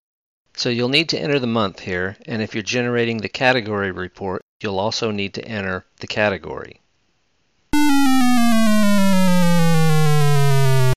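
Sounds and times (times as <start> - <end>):
speech: 0.6 - 6.8
computer program tone while generating a tabulations display: 7.8 - 10.9.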